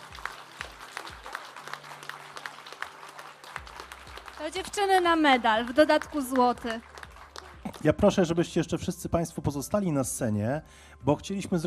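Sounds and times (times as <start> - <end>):
audience applause: 0.0 - 8.4
speech: 4.4 - 6.9, 7.8 - 11.6.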